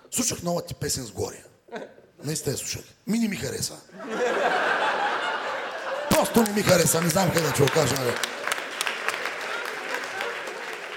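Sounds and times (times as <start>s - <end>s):
speech: 0.1s - 4.8s, 6.2s - 8.4s
laughter: 3.9s - 8.5s
audience clapping at a comedy roast: 6.0s - 10.9s.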